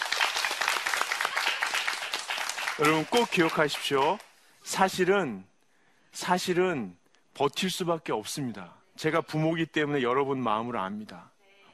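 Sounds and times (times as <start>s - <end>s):
audience applause: 0.0s - 4.3s
speech: 2.8s - 5.5s, 6.1s - 11.3s.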